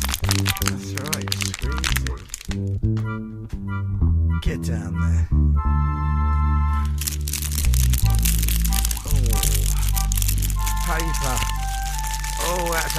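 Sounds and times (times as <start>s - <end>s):
crispy paper screwed up in a hand crunching and crinkling: 0.0s - 2.5s, 6.8s - 12.9s
speech: 0.5s - 6.4s, 10.9s - 11.6s, 12.4s - 12.9s.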